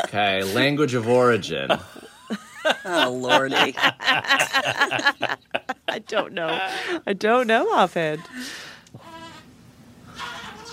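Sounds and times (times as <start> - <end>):
laughter: 0.0 - 7.0
speech: 0.1 - 5.4, 6.0 - 8.7
baby imitating a billy goat: 9.0 - 9.4
baby breathy vocal burst: 10.1 - 10.7.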